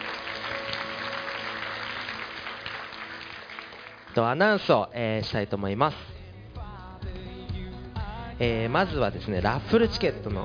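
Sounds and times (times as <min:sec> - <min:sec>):
crowd clapping: 0:00.0 - 0:04.7
speech: 0:04.2 - 0:06.1, 0:08.4 - 0:10.4.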